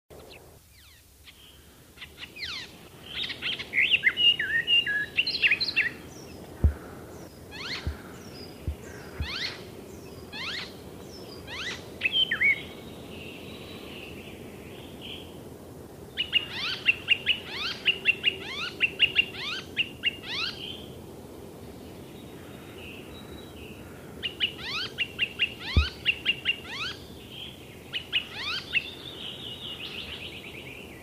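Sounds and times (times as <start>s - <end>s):
Icterine warbler singing: 0.2s - 15.4s, 16.0s - 21.0s, 21.6s - 31.0s
low knocks: 6.6s - 6.9s, 7.8s - 9.4s.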